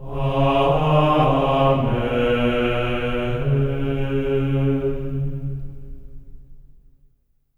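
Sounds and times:
voices singing amen: 0.0s - 5.2s.

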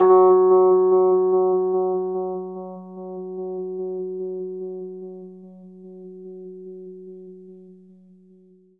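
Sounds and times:
Rhodes electric piano octave F sharp: 0.0s - 7.0s.

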